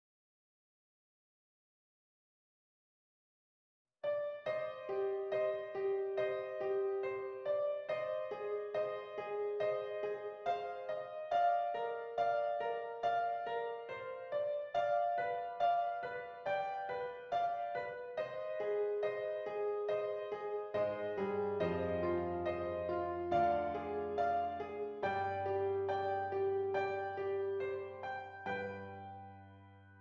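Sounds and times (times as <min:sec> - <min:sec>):
solo piano: 0:04.0 - 0:29.9.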